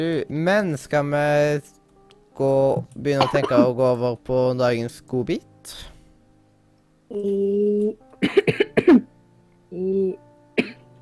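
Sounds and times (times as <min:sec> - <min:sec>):
speech: 0:00.0 - 0:01.8, 0:02.4 - 0:05.9, 0:07.1 - 0:09.1, 0:09.7 - 0:10.2
harsh coughing: 0:03.2 - 0:03.7, 0:08.2 - 0:09.1, 0:10.6 - 0:10.8.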